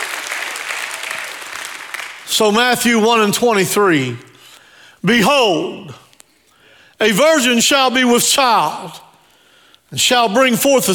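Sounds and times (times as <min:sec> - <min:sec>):
audience shouting praise: 0:00.0 - 0:02.2
audience hand clapping: 0:00.0 - 0:03.0
speech: 0:02.3 - 0:04.3, 0:05.0 - 0:06.0, 0:07.0 - 0:09.0, 0:09.9 - 0:10.9.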